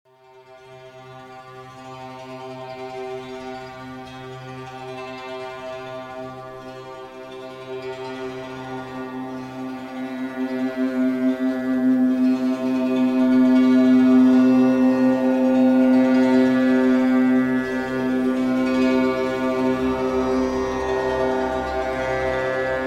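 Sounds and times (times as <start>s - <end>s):
deep relaxation music: 0.4s - 22.8s.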